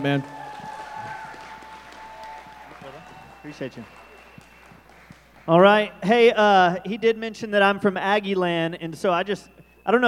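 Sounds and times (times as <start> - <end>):
speech: 0.0 - 0.4, 3.4 - 4.0, 5.5 - 10.0
audience applause welcoming a speaker onto a stage: 0.0 - 5.6.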